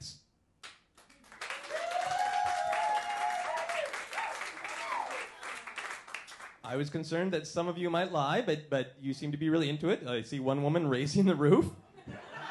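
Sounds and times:
audience applause: 0:01.0 - 0:06.6
speech: 0:06.7 - 0:11.8
laughter: 0:11.9 - 0:12.4.

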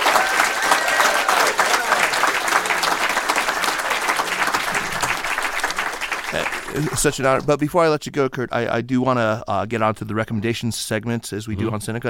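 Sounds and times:
audience applause: 0:00.0 - 0:07.5
speech: 0:06.7 - 0:12.0.

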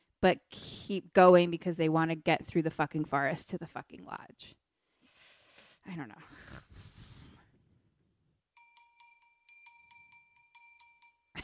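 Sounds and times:
speech: 0:00.2 - 0:04.6, 0:05.8 - 0:06.7
bells ringing: 0:08.6 - 0:11.4.

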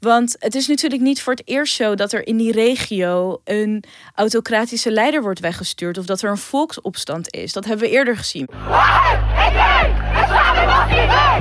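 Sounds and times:
speech: 0:00.0 - 0:11.3
large protest crowd chanting and shouting: 0:08.5 - 0:11.3.

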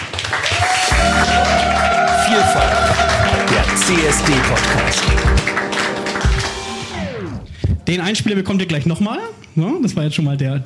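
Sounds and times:
audience applause: 0:00.0 - 0:07.4
speech: 0:02.4 - 0:03.1, 0:03.8 - 0:05.5, 0:07.9 - 0:10.6.

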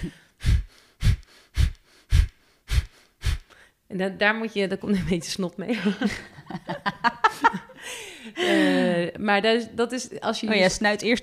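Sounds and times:
speech: 0:00.0 - 0:00.5, 0:03.9 - 0:06.9, 0:08.4 - 0:11.2
forceful rhythmic exhalations through the nose: 0:00.0 - 0:03.8
laughter: 0:05.7 - 0:08.8.

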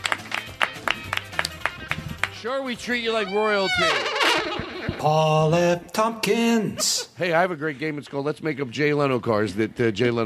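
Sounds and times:
applause: 0:00.0 - 0:02.4
speech: 0:02.4 - 0:10.2.

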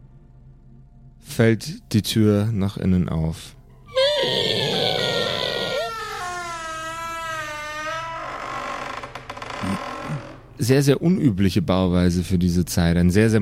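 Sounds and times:
speech: 0:01.4 - 0:03.6, 0:10.6 - 0:13.4
moaning from a cellar: 0:03.9 - 0:10.5.

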